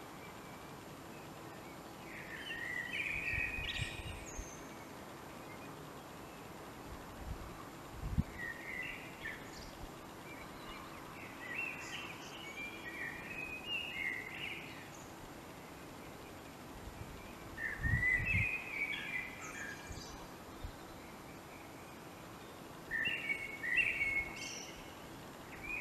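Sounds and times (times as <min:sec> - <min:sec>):
steady hiss: 0:00.0 - 0:25.7
common blackbird singing: 0:02.0 - 0:04.8, 0:08.3 - 0:15.1, 0:17.2 - 0:24.9, 0:25.5 - 0:25.7.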